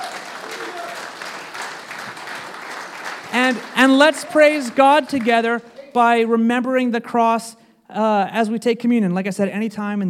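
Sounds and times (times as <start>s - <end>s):
audience clapping: 0.0s - 6.3s
speech: 3.4s - 10.0s.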